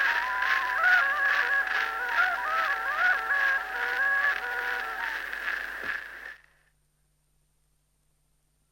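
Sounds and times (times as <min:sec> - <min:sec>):
Estonian torupill bagpipe playing a folk tune: 0:00.0 - 0:06.4.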